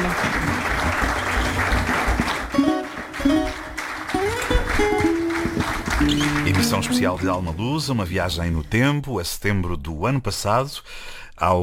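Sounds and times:
crowd applauding at a concert: 0:00.0 - 0:08.9
speech: 0:06.9 - 0:11.6.

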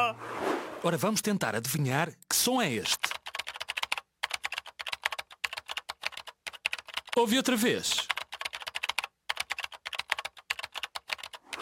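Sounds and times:
speech: 0:00.1 - 0:03.1, 0:07.2 - 0:08.1
typing on a computer keyboard: 0:02.9 - 0:07.2, 0:07.9 - 0:11.6.

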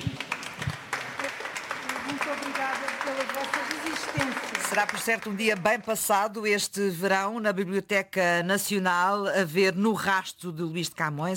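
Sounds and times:
applause at end of guided visit: 0:00.0 - 0:06.3
speech: 0:02.3 - 0:11.3.

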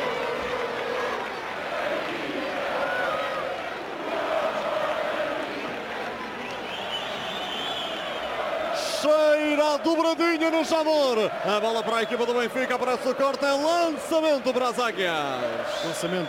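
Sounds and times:
football supporters chanting and singing in the stadium stands: 0:00.0 - 0:16.2
speech: 0:09.0 - 0:16.2.

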